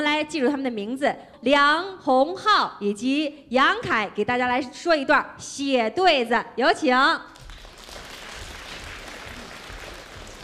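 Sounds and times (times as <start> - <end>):
speech: 0.0 - 7.3
audience applause: 7.4 - 10.4.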